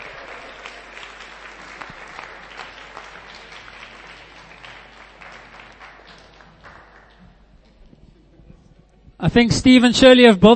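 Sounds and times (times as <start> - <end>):
audience applause: 0.0 - 7.4
speech: 9.2 - 10.5.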